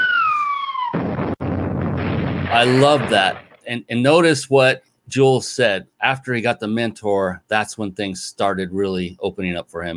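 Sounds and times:
falling whistle of a bomb-drop sound effect: 0:00.0 - 0:01.0
rumbling blast of a bomb-drop sound effect: 0:01.0 - 0:03.7
speech: 0:02.5 - 0:09.9.

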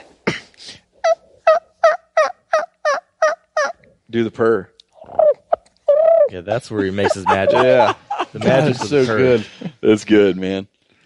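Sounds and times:
person imitating turkey gobble by mouth: 0:01.0 - 0:03.8, 0:05.0 - 0:06.3, 0:07.0 - 0:08.0
speech: 0:04.1 - 0:04.8, 0:06.3 - 0:10.7
laughter: 0:06.7 - 0:10.0.

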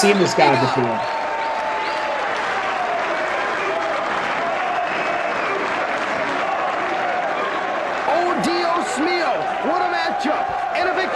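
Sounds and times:
speech: 0:00.0 - 0:01.2
large arena crowd applauding: 0:00.0 - 0:11.1.

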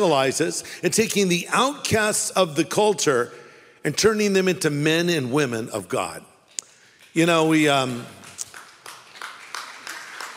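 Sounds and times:
speech: 0:00.0 - 0:06.3, 0:07.1 - 0:08.2
lone audience member clapping during a Sunday church sermon: 0:07.8 - 0:10.3.

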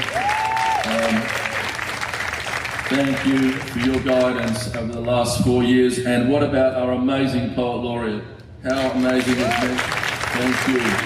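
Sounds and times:
whistle or cheer from a crowd: 0:00.0 - 0:01.2
crowd applauding: 0:00.0 - 0:05.0, 0:08.7 - 0:11.0
speech: 0:02.9 - 0:11.0.

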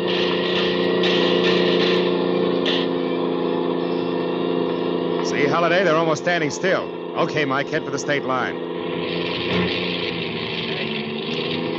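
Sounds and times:
car engine sputtering and dying: 0:00.0 - 0:11.7
speech: 0:05.6 - 0:08.8.

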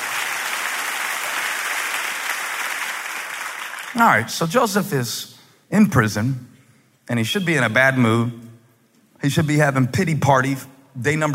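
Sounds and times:
audience clapping: 0:00.0 - 0:04.2
speech: 0:03.9 - 0:06.5, 0:07.1 - 0:08.5, 0:09.2 - 0:11.3.

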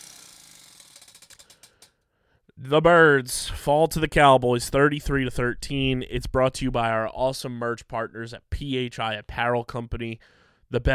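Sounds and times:
spinning prize wheel clicking: 0:00.0 - 0:01.9
speech: 0:02.6 - 0:10.9.

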